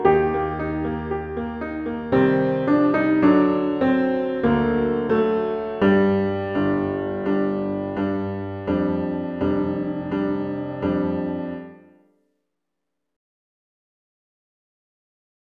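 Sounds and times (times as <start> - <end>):
musical accompaniment: 0.0 - 12.0.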